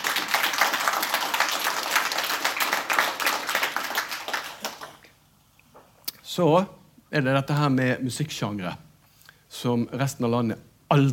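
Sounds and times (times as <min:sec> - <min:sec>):
audience applause: 0:00.0 - 0:05.1
speech: 0:06.4 - 0:08.8, 0:09.6 - 0:11.1.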